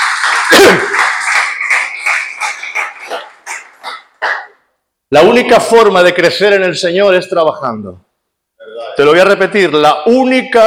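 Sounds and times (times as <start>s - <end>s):
crowd clapping: 0.0s - 4.6s
speech: 0.5s - 0.9s, 5.1s - 8.1s, 9.0s - 10.6s.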